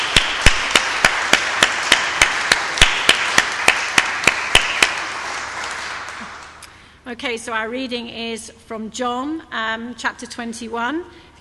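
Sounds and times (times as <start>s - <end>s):
audience round of applause: 0.0s - 6.6s
speech: 7.1s - 11.4s.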